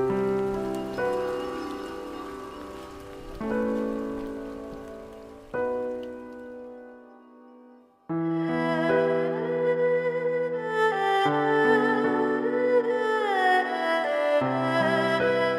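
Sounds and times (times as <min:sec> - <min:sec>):
erhu cover: 0:00.2 - 0:04.5, 0:08.3 - 0:15.5.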